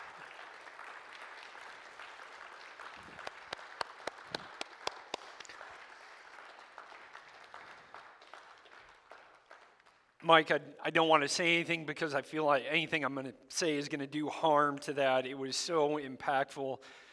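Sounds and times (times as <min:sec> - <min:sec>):
audience applause: 0:00.0 - 0:10.0
speech: 0:10.3 - 0:17.1.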